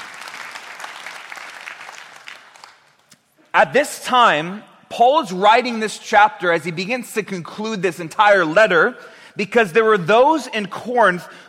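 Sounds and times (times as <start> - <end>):
audience clapping: 0.0 - 3.1
speech: 3.6 - 11.4.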